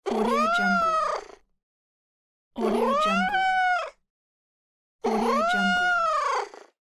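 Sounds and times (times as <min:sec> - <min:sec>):
cat meowing: 0:00.1 - 0:01.3, 0:02.6 - 0:04.0, 0:05.1 - 0:06.5.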